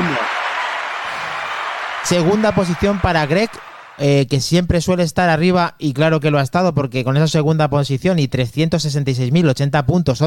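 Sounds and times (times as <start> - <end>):
hands clapping: 0.0 - 4.1
speech: 2.0 - 10.2.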